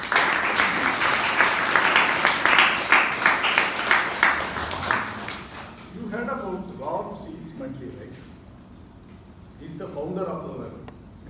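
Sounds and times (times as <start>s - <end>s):
round of applause from a group: 0.0s - 5.9s.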